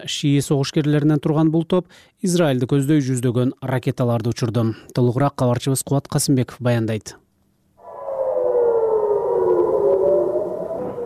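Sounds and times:
speech: 0:00.0 - 0:07.2
air raid siren wailing in northern Israel near the border with Lebanon: 0:07.8 - 0:11.0.

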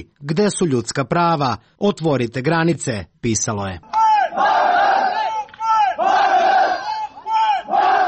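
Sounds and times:
speech: 0:00.0 - 0:04.5
migrant protesters chanting at border: 0:04.0 - 0:08.0.

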